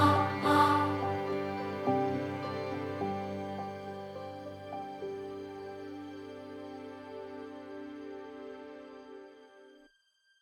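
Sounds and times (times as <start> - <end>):
tense horror quartet music: 0.0 - 4.0.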